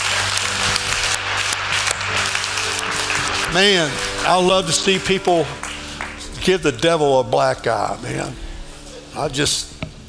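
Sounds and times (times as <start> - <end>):
many hands clapping in a church during a service: 0.0 - 7.1
speech: 3.5 - 5.7, 6.4 - 8.4, 9.2 - 9.7.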